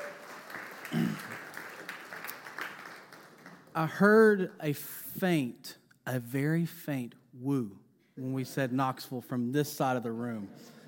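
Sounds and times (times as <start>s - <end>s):
audience applause welcoming a speaker at a church service: 0.0s - 4.8s
speech: 3.8s - 10.8s.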